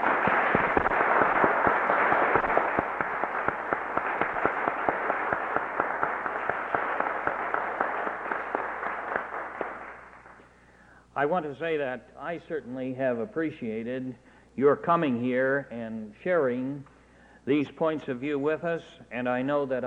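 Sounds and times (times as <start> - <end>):
audience round of applause: 0.0 - 10.4
speech: 11.2 - 16.9, 17.5 - 19.8.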